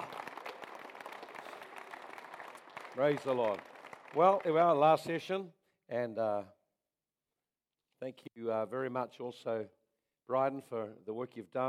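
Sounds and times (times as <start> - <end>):
audience clapping: 0.0 - 5.3
speech: 3.0 - 6.6, 8.0 - 11.6.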